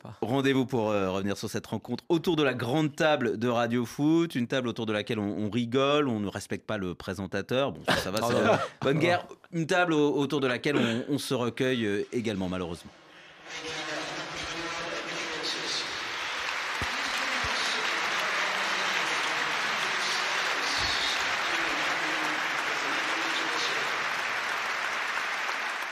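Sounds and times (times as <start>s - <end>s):
speech: 0.1s - 13.8s
stadium crowd applause at St. James Park in Newcastle: 14.0s - 25.9s.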